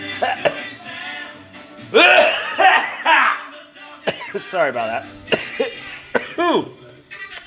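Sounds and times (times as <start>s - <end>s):
person coughing after smoke went down the wrong pipe: 0.2s - 0.7s, 1.9s - 3.4s, 4.1s - 4.4s, 5.4s - 6.7s
speech: 4.4s - 5.5s, 6.5s - 6.8s.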